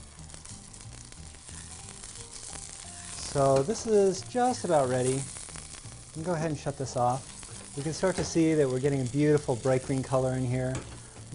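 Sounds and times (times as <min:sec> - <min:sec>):
parsley oil frying in a pan: 0:00.0 - 0:11.3
soft music: 0:00.0 - 0:11.3
speech: 0:03.3 - 0:05.4, 0:06.2 - 0:11.3.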